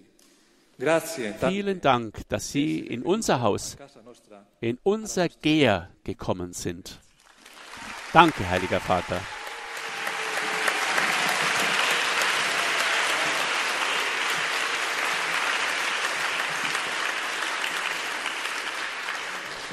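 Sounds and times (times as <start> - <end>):
speech: 0.8 - 7.0, 8.1 - 9.4
applause of the faithful: 7.2 - 19.7.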